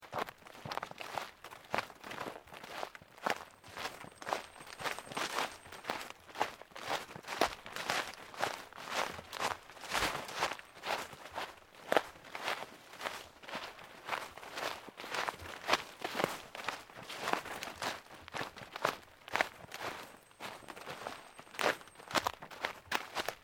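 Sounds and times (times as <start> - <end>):
sneaker footsteps on deep leaves: 0.6 - 23.4.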